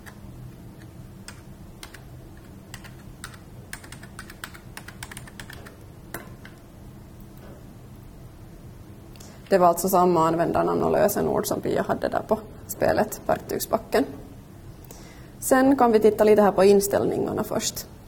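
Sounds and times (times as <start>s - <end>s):
typing a password on a computer keyboard: 0.8s - 6.6s
speech: 9.5s - 14.2s, 15.5s - 17.9s.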